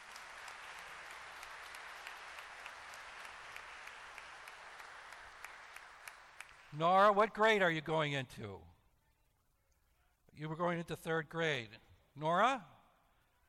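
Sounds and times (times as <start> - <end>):
crowd clapping: 0.0 - 7.3
speech: 6.7 - 8.7, 10.4 - 12.7.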